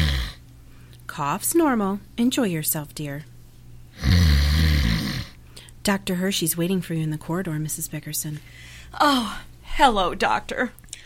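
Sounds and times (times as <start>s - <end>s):
loud snoring: 0.0s - 0.4s, 4.0s - 5.4s
speech: 1.1s - 3.3s, 5.8s - 10.8s.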